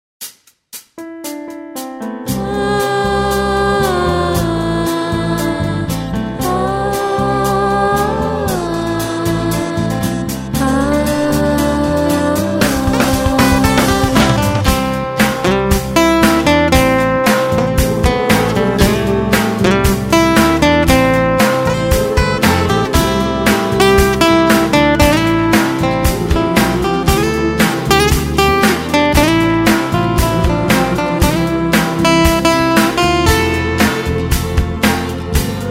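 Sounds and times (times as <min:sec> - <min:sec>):
guitar instrumental: 0:01.0 - 0:35.7.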